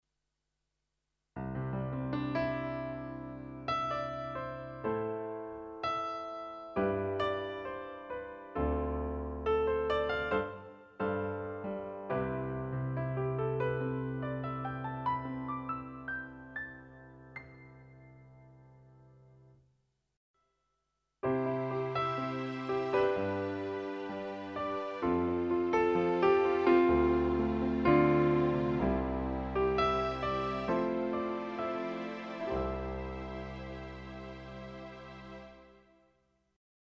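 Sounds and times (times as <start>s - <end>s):
piano: 1.4s - 19.6s, 21.2s - 36.2s.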